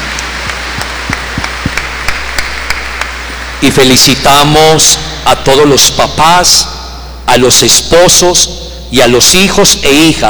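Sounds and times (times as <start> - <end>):
sparse audience clapping: 0.0 - 3.6
constant hiss: 0.0 - 10.2
speech: 3.6 - 6.7, 7.3 - 10.2.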